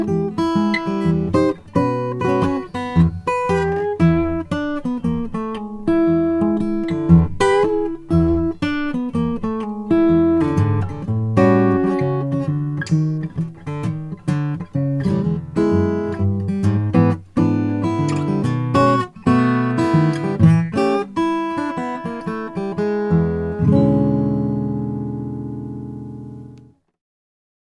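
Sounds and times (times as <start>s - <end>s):
custom mahogany acoustic guitar: 0.0s - 26.8s.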